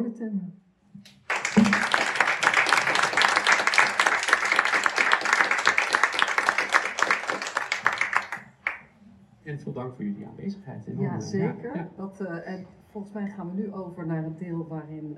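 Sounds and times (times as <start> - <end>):
speech: 0.0 - 2.0, 9.5 - 15.1
sustained applause from a crowd: 1.1 - 8.9.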